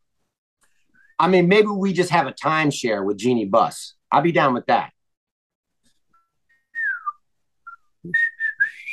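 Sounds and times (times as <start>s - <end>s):
speech: 1.2s - 5.0s, 8.0s - 8.3s
person whistling: 6.1s - 8.9s.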